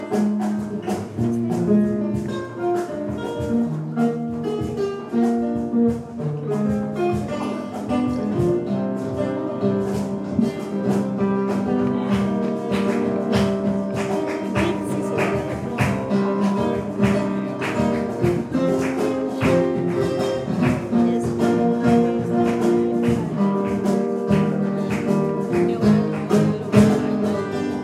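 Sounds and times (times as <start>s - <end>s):
flamenco music: 0.0s - 27.8s.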